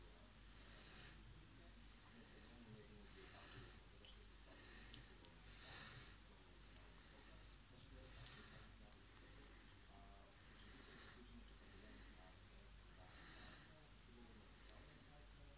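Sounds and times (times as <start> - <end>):
rabbit chewing a banana: 0.0 - 15.5.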